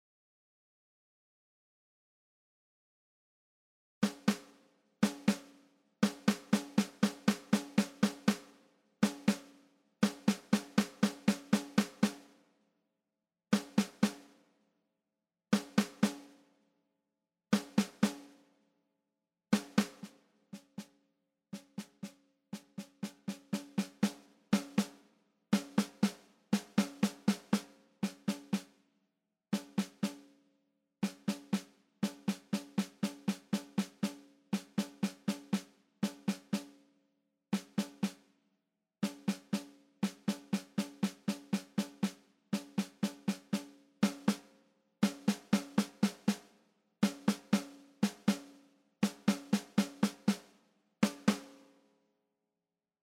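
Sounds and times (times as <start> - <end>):
snare drum: 4.0 - 12.4, 13.6 - 14.4, 15.6 - 16.4, 17.6 - 18.4, 19.6 - 21.0, 21.6 - 28.8, 29.6 - 30.4, 31.0 - 36.8, 37.6 - 38.3, 39.0 - 51.8.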